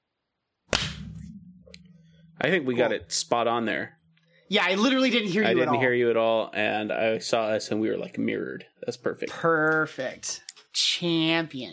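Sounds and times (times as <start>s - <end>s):
lingering low hum: 0.7s - 6.1s
single sharp hand clap for recording sync: 0.8s - 1.1s
speech: 2.4s - 11.7s.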